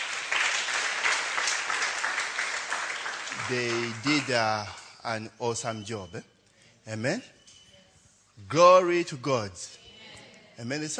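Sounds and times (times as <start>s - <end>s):
audience applauding: 0.0s - 4.8s
speech: 3.5s - 7.4s, 8.4s - 9.8s, 10.6s - 10.9s.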